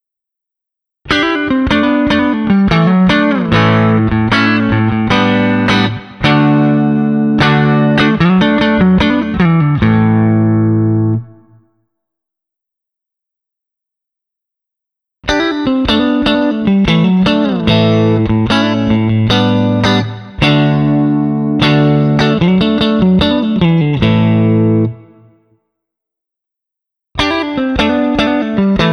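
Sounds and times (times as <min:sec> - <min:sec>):
clean single-coil guitar: 0:01.1 - 0:11.7, 0:15.2 - 0:25.4, 0:27.2 - 0:28.9.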